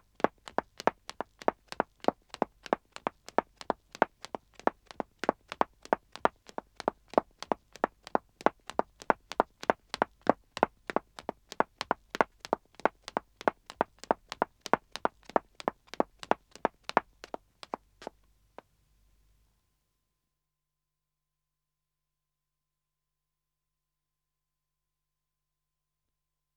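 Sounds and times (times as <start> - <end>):
woman running footsteps on dead-acoustic wood: 0.1 - 18.2.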